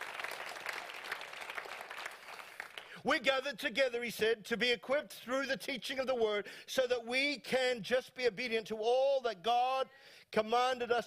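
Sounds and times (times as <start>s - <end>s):
audience applause: 0.0s - 3.0s
speech: 3.0s - 11.0s.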